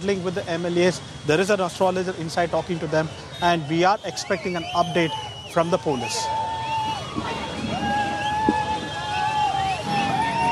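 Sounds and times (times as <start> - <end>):
speech: 0.0 - 6.4
crowd of fans cheering: 2.6 - 10.4.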